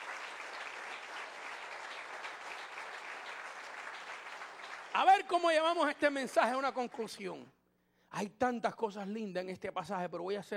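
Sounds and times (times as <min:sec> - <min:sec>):
church audience applauding: 0:00.0 - 0:05.7
speech: 0:05.0 - 0:10.5.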